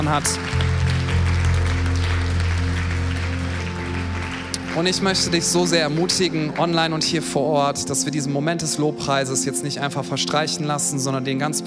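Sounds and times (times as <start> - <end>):
speech: 0.0 - 0.6, 4.8 - 11.6
crowd applause: 0.0 - 7.2
sustained low musical tones: 0.0 - 11.6.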